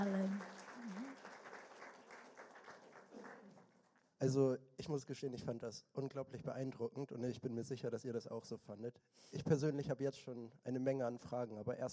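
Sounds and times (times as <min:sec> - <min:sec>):
audience applause: 0:00.0 - 0:04.0
speech: 0:04.2 - 0:11.9.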